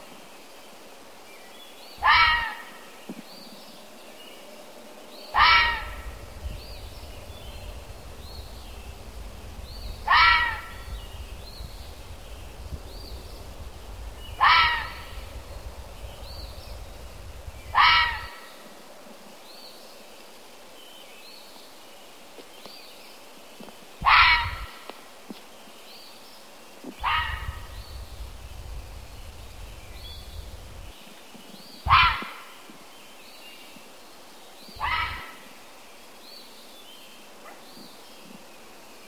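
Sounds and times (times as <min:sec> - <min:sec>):
animal: 0:02.0 - 0:02.8, 0:05.2 - 0:12.2, 0:12.8 - 0:18.5, 0:24.0 - 0:24.8, 0:26.9 - 0:30.6, 0:31.9 - 0:32.6, 0:34.7 - 0:35.5.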